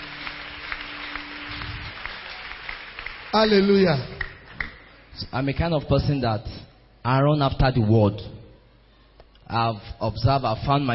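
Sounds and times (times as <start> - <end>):
audience clapping hands: 0.0 - 5.3
speech: 3.3 - 4.2, 5.2 - 8.4, 9.5 - 10.9.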